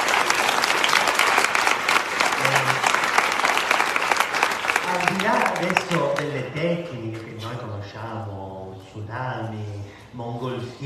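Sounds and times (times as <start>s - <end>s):
audience applause: 0.0s - 6.5s
speech: 5.6s - 10.8s.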